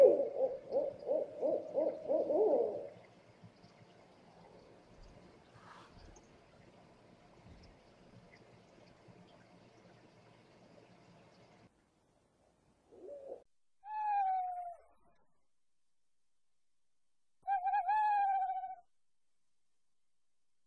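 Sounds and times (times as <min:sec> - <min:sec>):
owl hooting: 0:00.0 - 0:02.9, 0:12.9 - 0:14.9, 0:17.4 - 0:18.8.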